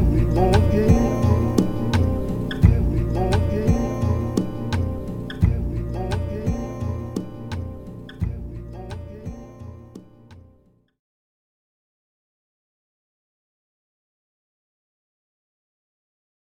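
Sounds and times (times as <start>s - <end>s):
instrumental music: 0.0s - 10.8s.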